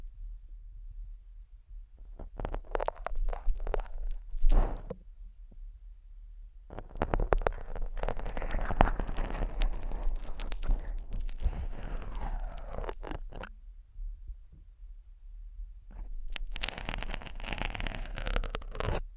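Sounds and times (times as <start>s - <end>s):
slow ear scratching: 2.2s - 4.9s, 6.7s - 13.5s, 15.9s - 19.1s.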